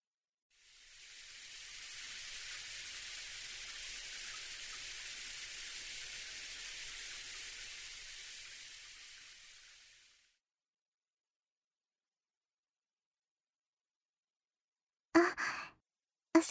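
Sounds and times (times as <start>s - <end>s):
shower water running: 0.5s - 10.4s.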